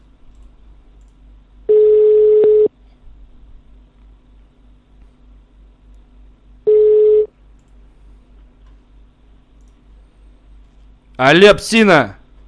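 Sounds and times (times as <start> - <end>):
telephone ringback tones from a dialed number: 1.7 - 2.7, 6.7 - 7.3
speech: 11.2 - 12.2.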